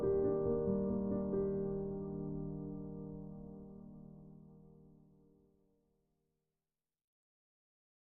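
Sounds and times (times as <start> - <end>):
short mood piano rhythm: 0.0 - 4.9.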